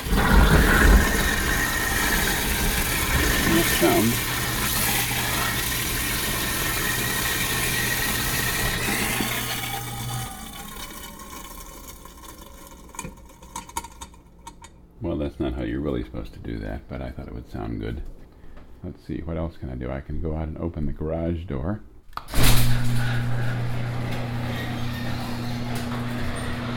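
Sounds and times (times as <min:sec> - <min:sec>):
kitchen garbage disposal running: 0:00.0 - 0:14.9, 0:22.4 - 0:26.7
speech: 0:03.8 - 0:04.3, 0:16.5 - 0:18.2, 0:18.8 - 0:23.0.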